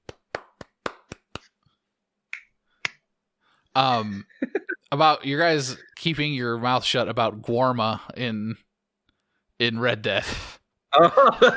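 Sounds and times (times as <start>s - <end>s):
person clapping: 0.0s - 1.6s
speech: 3.8s - 8.6s, 9.6s - 11.5s
laughter: 11.0s - 11.5s.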